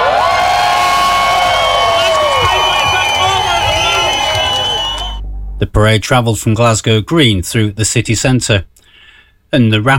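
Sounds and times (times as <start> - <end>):
crowd at the Glasgow Pride march cheering and whooping: 0.0 - 5.2
clapping: 1.3 - 5.2
speech: 5.8 - 8.8, 9.5 - 9.9.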